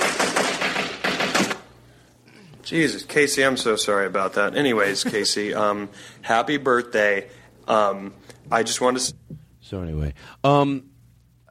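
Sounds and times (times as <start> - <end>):
gunshots: 0.0 - 1.7
faint low hum: 1.6 - 11.4
speech: 2.7 - 10.9.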